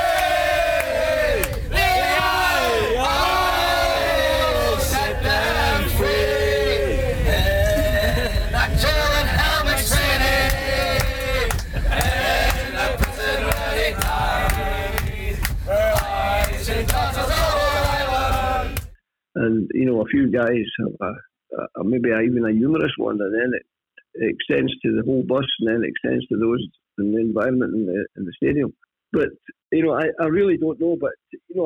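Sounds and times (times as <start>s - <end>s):
football supporters singing a chant in unison: 0.0s - 18.9s
speech: 20.1s - 31.6s.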